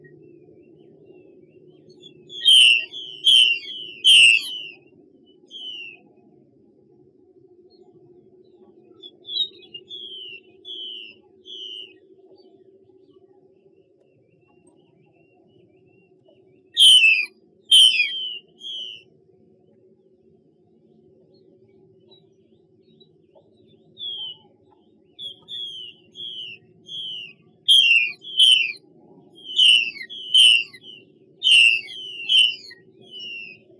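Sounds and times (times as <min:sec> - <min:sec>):
Chinese hwamei whistling: 0:01.1 - 0:06.1, 0:08.9 - 0:12.5, 0:16.8 - 0:19.1, 0:23.8 - 0:33.7.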